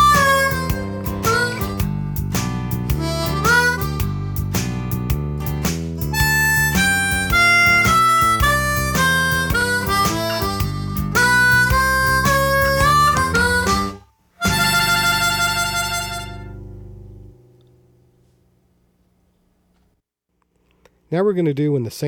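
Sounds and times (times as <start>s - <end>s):
fast basic blues music: 0.0s - 16.9s.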